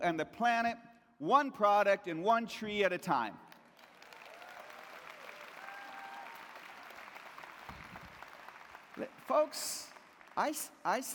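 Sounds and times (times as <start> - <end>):
speech: 0.0 - 3.5, 9.0 - 11.1
audience applause: 3.8 - 10.5
faint whistles or whoops: 4.3 - 7.0.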